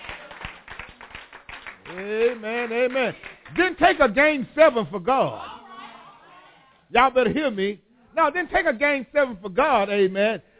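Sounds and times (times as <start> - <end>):
group of hands clapping: 0.0 - 4.2
speech: 1.9 - 5.5, 6.9 - 10.5.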